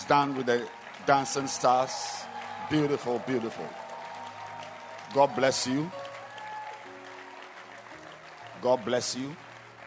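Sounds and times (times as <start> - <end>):
crowd clapping: 0.0 - 9.8
speech: 0.1 - 3.8, 5.1 - 6.0, 8.6 - 9.4.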